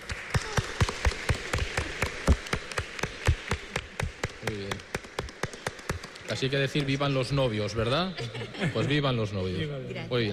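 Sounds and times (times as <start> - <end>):
applause for a couple: 0.0 - 8.0
speech: 6.4 - 10.3
laughter: 7.4 - 10.2.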